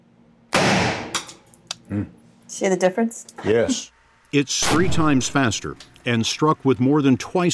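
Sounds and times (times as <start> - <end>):
AR-15 rifle round fired into ballistic gel: 0.5 - 1.2, 4.6 - 5.4
speech: 1.9 - 7.5.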